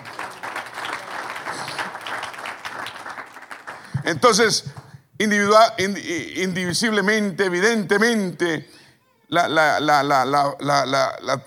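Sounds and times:
audience applauding: 0.0s - 4.2s
speech: 4.1s - 11.4s.

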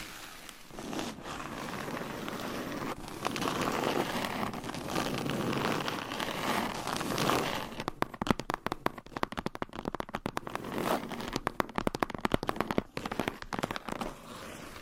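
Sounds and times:
surface scratching with long nails: 0.0s - 7.8s, 13.0s - 14.8s
tapping and crackling strokes: 6.8s - 14.1s.

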